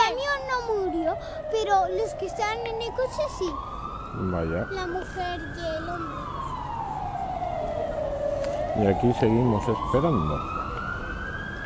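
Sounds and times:
ambulance siren passing: 0:00.0 - 0:11.6
speech: 0:01.2 - 0:06.4, 0:08.8 - 0:10.6.

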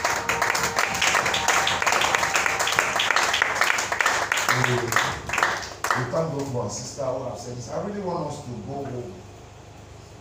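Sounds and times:
audience clapping hands: 0:00.0 - 0:06.5
speech: 0:06.1 - 0:09.2.

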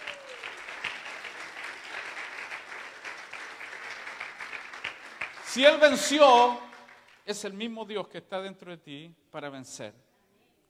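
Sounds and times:
audience applause: 0:00.0 - 0:07.2
speech: 0:05.5 - 0:06.6, 0:07.2 - 0:10.0.

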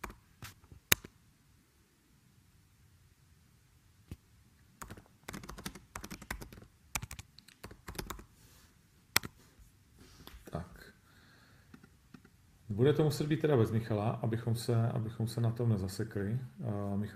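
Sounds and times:
typing a message on a computer keyboard: 0:04.8 - 0:08.3, 0:09.2 - 0:09.4
speech: 0:12.8 - 0:17.1.

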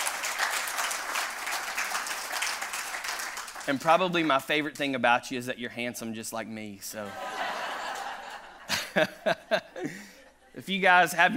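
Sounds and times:
audience clapping: 0:00.0 - 0:04.6
speech: 0:03.7 - 0:07.4, 0:09.0 - 0:11.3
laughter: 0:07.0 - 0:10.6.

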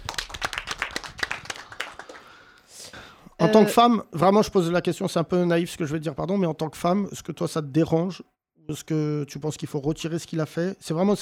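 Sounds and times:
audience applause: 0:00.0 - 0:02.5
speech: 0:03.5 - 0:11.1.

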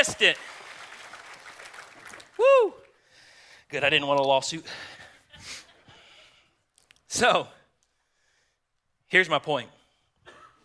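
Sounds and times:
speech: 0:00.0 - 0:00.6, 0:02.4 - 0:02.8, 0:03.7 - 0:05.6, 0:07.1 - 0:07.6, 0:09.1 - 0:09.8
audience round of applause: 0:00.0 - 0:02.9.

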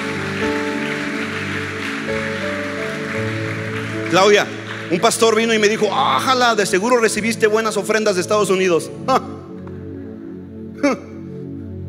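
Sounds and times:
audience applause: 0:00.0 - 0:07.0
speech: 0:04.1 - 0:09.3.

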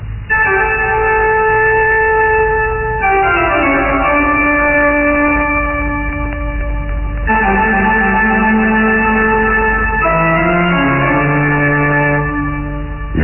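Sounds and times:
spectral old pipe organ music in a castle: 0:00.0 - 0:13.2.

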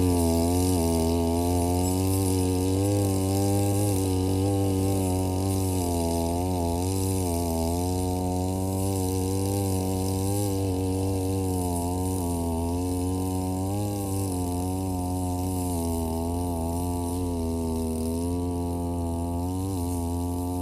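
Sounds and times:
two-stroke brush cutter mowing grass along rows of green onions: 0:00.0 - 0:20.6.

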